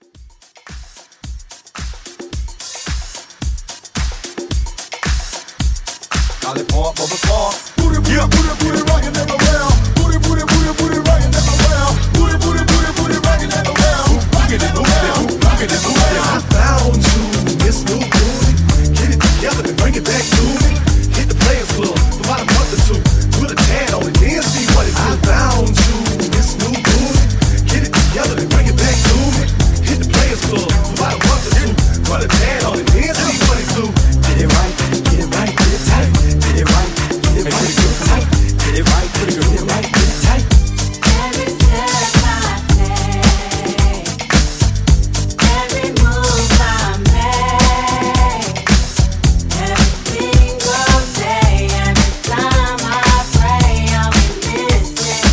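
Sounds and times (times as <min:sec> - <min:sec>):
90s hype drum beat: 0:00.0 - 0:55.3.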